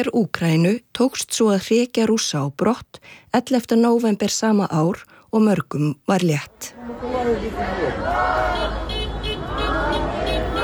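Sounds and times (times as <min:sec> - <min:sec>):
speech: 0:00.0 - 0:07.9
low rumble of passing vehicles: 0:06.8 - 0:10.6
people celebrating in a street in Kherson on liberation day: 0:06.8 - 0:10.6.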